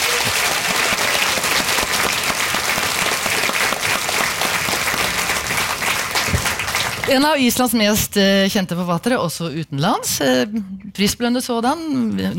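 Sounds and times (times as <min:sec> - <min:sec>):
audience applause: 0:00.0 - 0:07.3
speech: 0:07.1 - 0:12.3.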